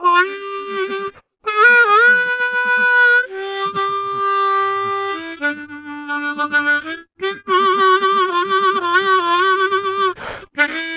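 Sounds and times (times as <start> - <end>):
harmonica in G: 0.0 - 10.9.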